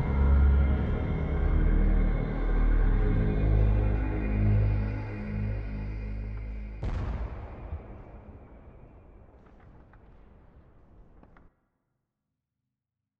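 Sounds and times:
ambient music: 0.0s - 9.4s.

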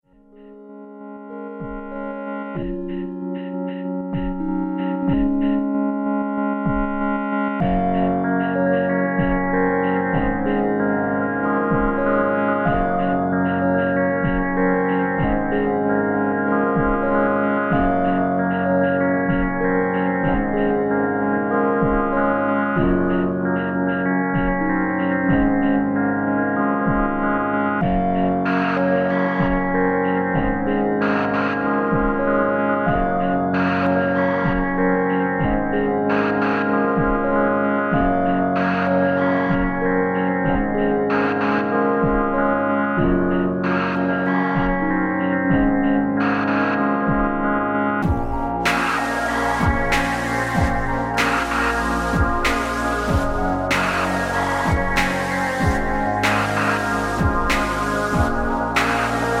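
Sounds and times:
song sketch: 0.1s - 59.3s.

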